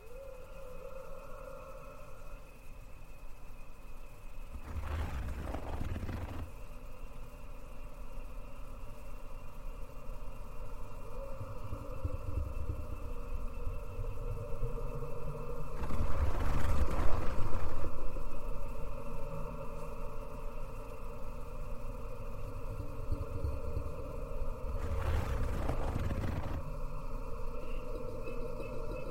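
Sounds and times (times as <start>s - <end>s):
low steady engine-like hum in a Thai cemetery: 0.0s - 29.0s
bursts of rushing noise: 4.5s - 6.5s, 24.8s - 26.6s.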